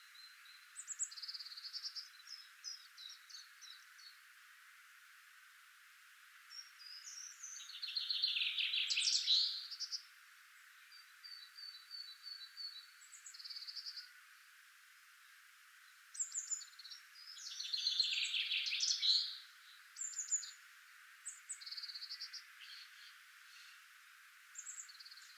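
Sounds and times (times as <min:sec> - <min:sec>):
Common chaffinch singing: 0:00.0 - 0:04.3, 0:06.5 - 0:14.2, 0:15.2 - 0:23.8, 0:24.5 - 0:25.3.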